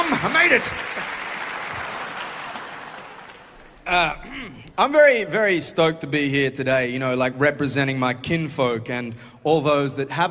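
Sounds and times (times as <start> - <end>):
crowd applauding: 0.0 - 4.2
speech: 0.4 - 1.2, 3.9 - 10.2.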